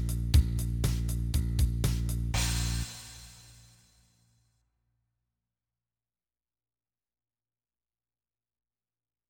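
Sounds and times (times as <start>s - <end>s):
blues bass line: 0.0s - 3.5s.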